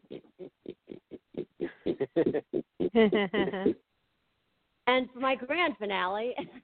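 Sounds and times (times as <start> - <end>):
person imitating a pig: 0.0 - 3.8
speech: 2.2 - 3.8, 4.9 - 6.6.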